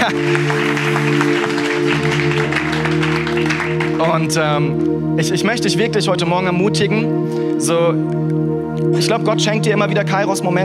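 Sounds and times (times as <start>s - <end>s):
speech: 0.0s - 1.5s, 4.0s - 10.6s
applause: 0.0s - 4.4s.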